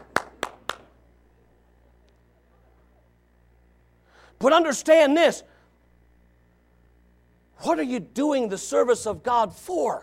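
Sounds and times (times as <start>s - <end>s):
sharp hand claps: 0.0s - 0.9s
faint hum: 0.0s - 10.0s
speech: 4.4s - 5.5s, 7.6s - 10.0s.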